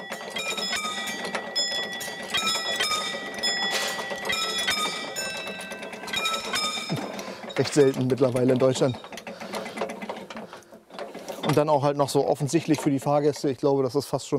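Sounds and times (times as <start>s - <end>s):
railway level crossing warning bell ringing: 0.0s - 9.2s
faint mechanical rattle: 0.0s - 14.1s
speech: 7.6s - 9.2s, 11.5s - 14.3s.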